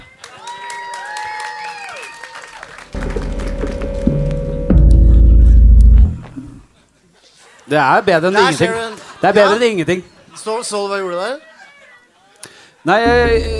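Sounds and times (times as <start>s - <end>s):
applause: 0.0s - 4.4s
laughter: 5.0s - 10.7s
speech: 7.7s - 11.5s, 12.8s - 13.5s.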